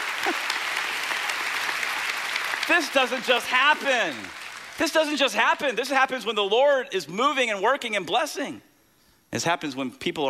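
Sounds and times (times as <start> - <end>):
crowd applauding: 0.0 - 5.7
speech: 2.7 - 8.7, 9.3 - 10.2.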